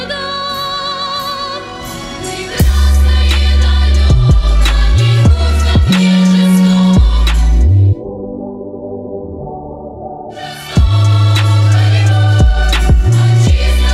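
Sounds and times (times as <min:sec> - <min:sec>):
trap remix: 0:02.2 - 0:08.2, 0:10.3 - 0:13.9.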